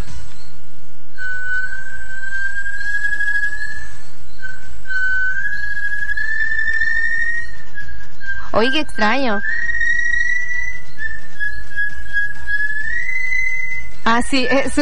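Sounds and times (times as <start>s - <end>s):
small bird singing: 1.2s - 14.8s
speech: 8.6s - 9.7s, 14.1s - 14.8s.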